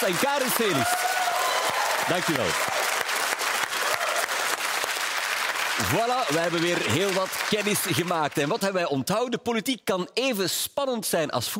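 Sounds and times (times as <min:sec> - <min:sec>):
speech: 0:00.0 - 0:01.1, 0:02.1 - 0:02.8, 0:05.8 - 0:11.5
audience applause: 0:00.0 - 0:08.8.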